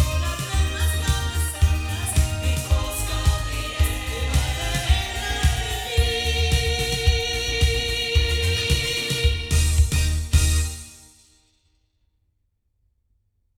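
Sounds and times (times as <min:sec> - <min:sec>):
loudspeakers: 0:00.0 - 0:10.7.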